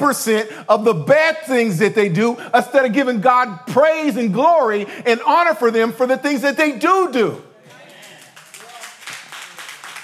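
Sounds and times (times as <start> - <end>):
speech: 0.0 - 7.5
audience clapping: 7.7 - 10.0.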